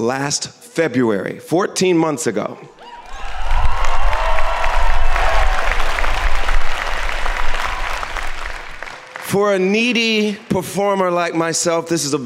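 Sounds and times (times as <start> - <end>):
speech: 0.0 - 3.0, 9.3 - 12.2
live audience applause: 2.9 - 10.3.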